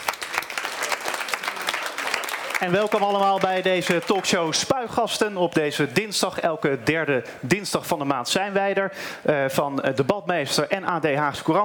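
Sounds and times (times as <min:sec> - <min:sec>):
audience clapping: 0:00.0 - 0:04.8
speech: 0:02.6 - 0:11.6.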